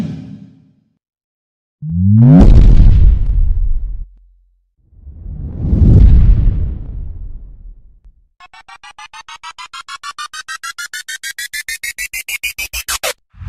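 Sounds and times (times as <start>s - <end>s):
bass sound effect: 1.9s - 4.3s, 5.0s - 13.1s.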